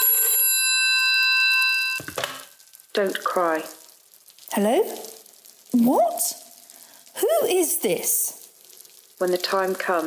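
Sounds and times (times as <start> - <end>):
telephone bell ringing: 0.0 - 2.0
speech: 3.0 - 3.8, 4.5 - 5.1, 5.7 - 6.4, 7.2 - 8.4, 9.2 - 10.0.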